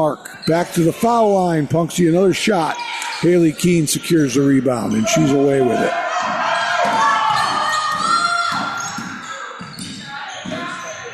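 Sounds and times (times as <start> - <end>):
speech: 0.0 - 6.4
crowd shouting and cheering at a Lady Owls game against Punxsutawney: 0.0 - 11.1
basketball dribbling on the court: 6.2 - 11.1.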